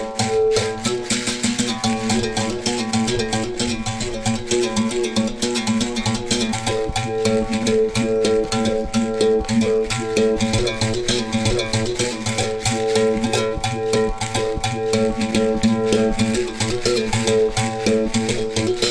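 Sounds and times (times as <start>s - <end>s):
berimbau: 0.0s - 18.9s.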